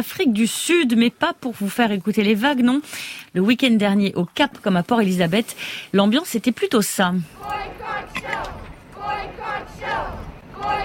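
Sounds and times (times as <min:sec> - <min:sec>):
speech: 0:00.0 - 0:10.8
protesters chanting at beach demonstration: 0:07.3 - 0:10.8.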